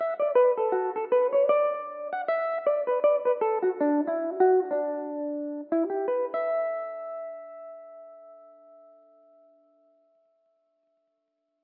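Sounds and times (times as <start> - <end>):
Irish mandolin playing a reel in E dorian: 0.0 - 8.2.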